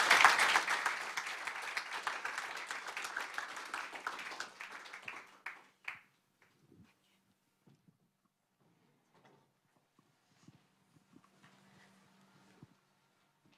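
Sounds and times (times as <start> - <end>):
audience applause: 0.0 - 6.0.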